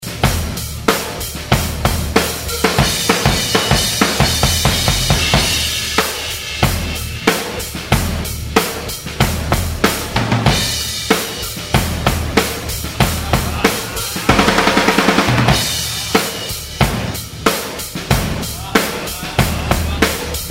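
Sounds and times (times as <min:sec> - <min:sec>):
drum outtakes: 0:00.0 - 0:20.4
laughter: 0:02.2 - 0:07.1, 0:10.6 - 0:20.4.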